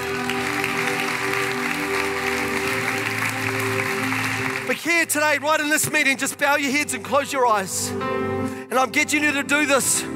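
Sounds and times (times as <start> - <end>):
audience applause: 0.0 - 5.5
speech: 4.8 - 10.1.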